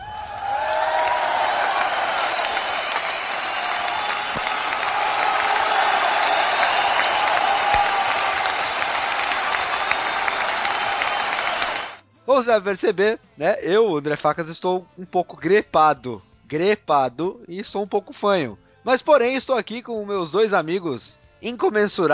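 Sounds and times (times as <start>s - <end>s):
applause: 0.0s - 12.0s
speech: 12.4s - 22.1s.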